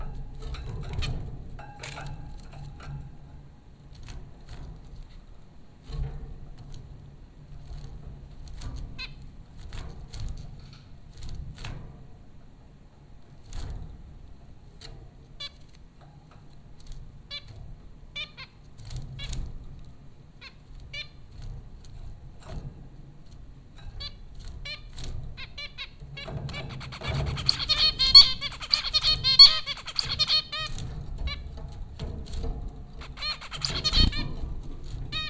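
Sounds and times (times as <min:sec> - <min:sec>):
steady low hum: 0:00.0 - 0:35.2
zebra finches giving nasal honking calls: 0:25.4 - 0:30.8, 0:33.0 - 0:34.4.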